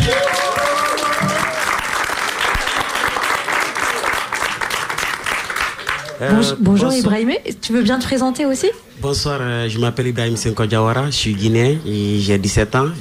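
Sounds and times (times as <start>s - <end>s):
audience applauding: 0.0s - 6.6s
speech: 6.2s - 12.9s.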